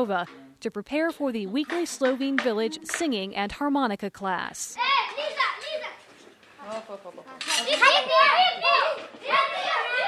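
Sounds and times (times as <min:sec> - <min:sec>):
speech: 0:00.0 - 0:05.4, 0:06.7 - 0:10.0
crowd of children shouting and cheering: 0:04.8 - 0:06.1, 0:07.6 - 0:10.0.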